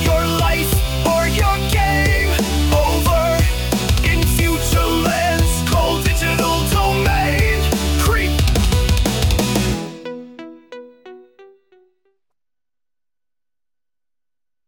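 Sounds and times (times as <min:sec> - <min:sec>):
industrial metal music: 0:00.0 - 0:10.3.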